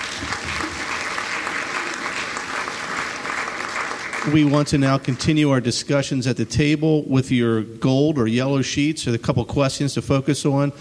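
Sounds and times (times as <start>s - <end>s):
audience applause: 0.0s - 5.4s
speech: 4.2s - 10.7s.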